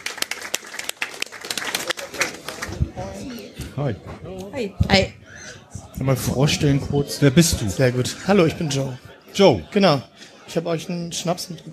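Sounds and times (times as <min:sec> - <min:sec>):
audience applause: 0:00.0 - 0:03.2
speech: 0:03.8 - 0:11.7.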